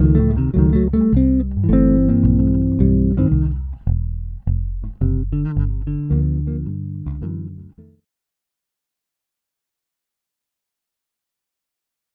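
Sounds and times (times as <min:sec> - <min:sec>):
basses: 0:00.0 - 0:08.0.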